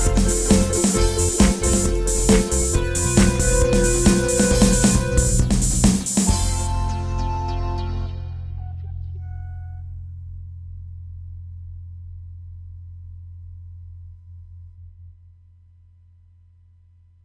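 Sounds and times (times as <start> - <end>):
jig tune: 0.0 - 8.6.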